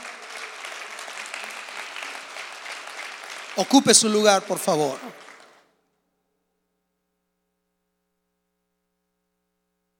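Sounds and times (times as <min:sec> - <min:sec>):
audience applauding: 0:00.0 - 0:05.7
speech: 0:03.6 - 0:05.2.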